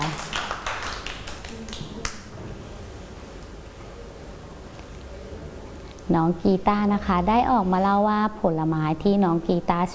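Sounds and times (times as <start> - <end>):
children clapping hands: 0.0 - 2.3
speech: 6.1 - 9.9.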